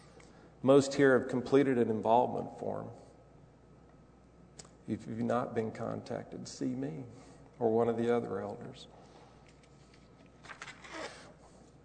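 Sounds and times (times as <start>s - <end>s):
speech: 0.6s - 3.0s, 4.9s - 9.0s
page of notes flipped: 10.4s - 11.2s.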